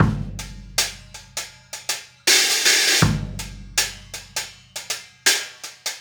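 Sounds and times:
kick drum: 0.0 - 0.8, 3.0 - 3.7
hi-hat: 0.0 - 5.9.

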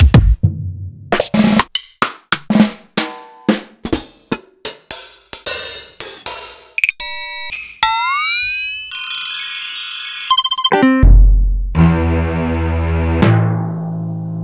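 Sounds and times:
R&B music: 0.0 - 6.8, 10.4 - 14.4.

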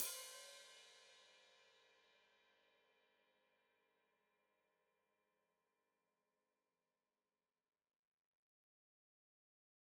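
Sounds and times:
open hi-hat played with foot: 0.0 - 1.0.

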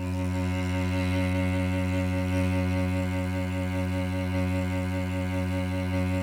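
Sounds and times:
chamber cello: 0.0 - 6.2.

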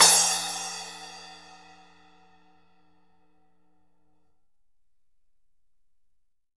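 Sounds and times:
splash cymbal: 0.0 - 2.1.

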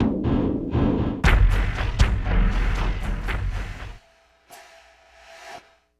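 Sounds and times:
electro drums: 0.0 - 4.0.

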